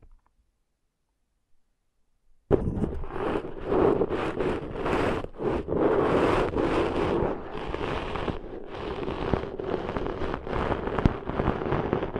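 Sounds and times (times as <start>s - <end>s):
brief louder pops: 2.5s - 12.1s
ear cleaning rough scratching and crackling: 2.7s - 12.1s.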